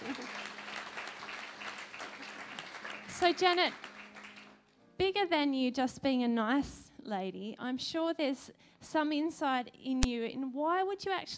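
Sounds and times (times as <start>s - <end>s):
audience applause: 0.0s - 4.6s
speech: 3.2s - 3.8s, 5.0s - 11.3s.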